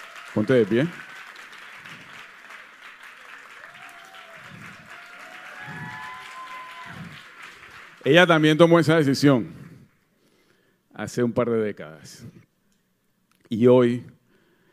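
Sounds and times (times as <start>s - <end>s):
applause: 0.0s - 8.9s
speech: 0.4s - 1.1s, 8.1s - 9.6s, 11.0s - 12.4s, 13.5s - 14.2s.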